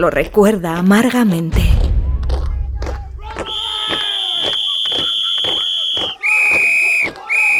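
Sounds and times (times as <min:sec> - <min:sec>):
speech: 0:00.0 - 0:01.8
hysterical agitated voices shouting: 0:02.7 - 0:07.5
long shrill whistle: 0:03.4 - 0:07.5.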